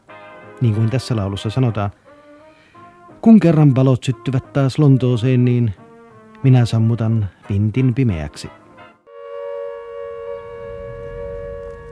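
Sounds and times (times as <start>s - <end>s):
speech: 0.6s - 2.0s, 3.2s - 5.8s, 6.4s - 8.6s
air raid all-clear siren steady tone: 9.1s - 11.9s
low rumble: 10.0s - 11.9s.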